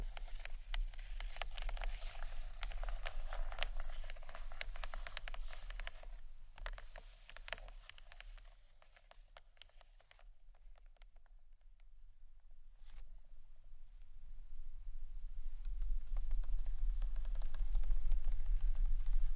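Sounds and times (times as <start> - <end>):
gentle scratchy tapping on books: 0.0 - 11.1, 15.6 - 19.3.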